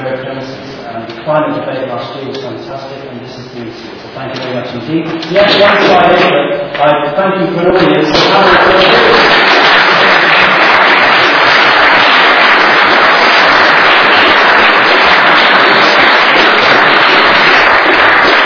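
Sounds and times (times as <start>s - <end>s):
speech: 1.3s - 9.2s
sustained applause from a sizable audience: 8.1s - 18.4s.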